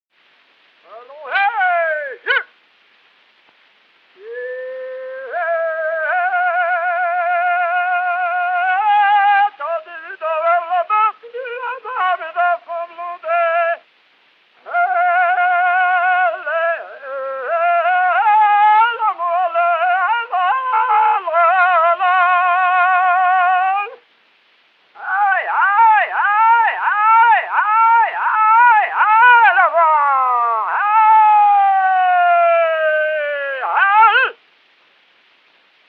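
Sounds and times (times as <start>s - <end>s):
briolée ox-driving song: 0.8s - 2.4s, 4.2s - 13.8s, 14.6s - 24.0s, 25.0s - 34.4s.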